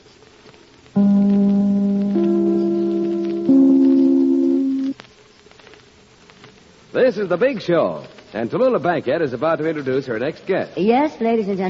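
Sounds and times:
soft hiss: 0:00.0 - 0:11.6
broadcast chimes: 0:01.0 - 0:05.0
speech: 0:07.0 - 0:11.6.

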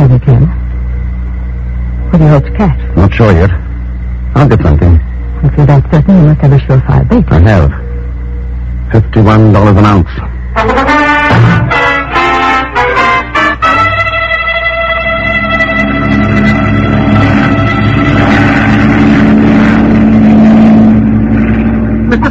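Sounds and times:
flying boat engine droning in flight: 0:00.0 - 0:22.2
speech: 0:02.3 - 0:03.7, 0:04.4 - 0:07.8, 0:08.9 - 0:11.8.

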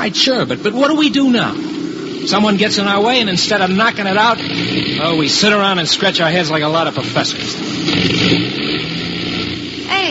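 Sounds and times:
speech: 0:00.0 - 0:09.2
aircraft engine sputtering: 0:00.0 - 0:10.1
rising tonal sweep: 0:00.0 - 0:10.1.

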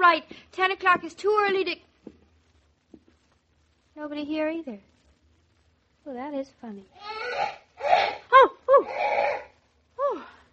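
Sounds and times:
speech: 0:00.0 - 0:01.9, 0:04.0 - 0:04.9, 0:06.0 - 0:09.4
parrot squawking: 0:07.0 - 0:09.5.

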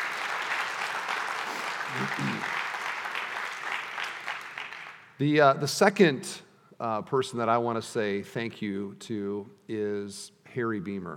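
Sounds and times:
crowd applauding: 0:00.0 - 0:05.1
speech: 0:01.9 - 0:02.6, 0:05.2 - 0:11.1.

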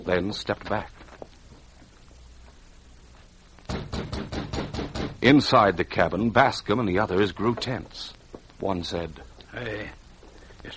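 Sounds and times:
speech: 0:00.0 - 0:01.0, 0:05.2 - 0:10.0
knocking on a cabin door: 0:03.7 - 0:05.2.

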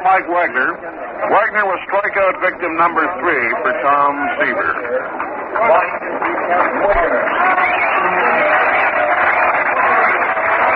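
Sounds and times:
speech: 0:00.0 - 0:07.9
baseball crowd applauding: 0:03.2 - 0:10.7.

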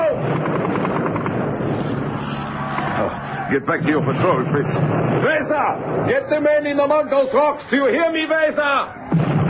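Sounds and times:
low-flying Mosquito fighter-bomber engines roaring: 0:00.1 - 0:05.1
speech: 0:03.5 - 0:09.3.

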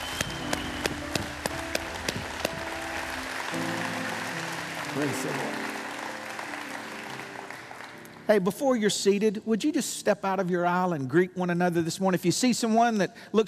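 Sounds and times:
audience clapping in praise: 0:00.0 - 0:08.6
speech: 0:05.0 - 0:05.7, 0:08.3 - 0:13.4.

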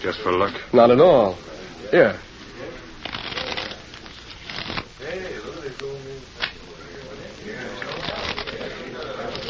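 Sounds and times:
speech: 0:00.0 - 0:02.3
deck of playing cards being shuffled: 0:03.0 - 0:04.9, 0:07.7 - 0:09.4.

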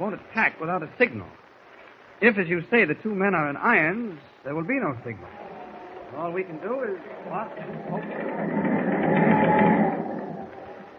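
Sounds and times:
speech: 0:00.0 - 0:01.5, 0:02.2 - 0:05.4, 0:06.1 - 0:08.6
ship's engine running: 0:05.6 - 0:10.9.

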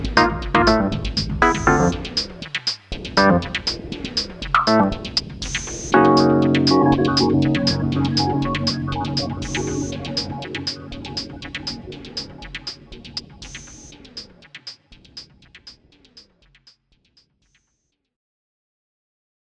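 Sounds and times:
Wurlitzer electric piano cyberfunk: 0:00.1 - 0:02.1, 0:05.9 - 0:12.6.

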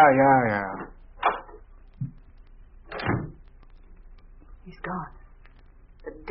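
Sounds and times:
speech: 0:00.0 - 0:01.4, 0:04.7 - 0:05.2, 0:06.0 - 0:06.2
door shut and locked: 0:02.9 - 0:03.4.

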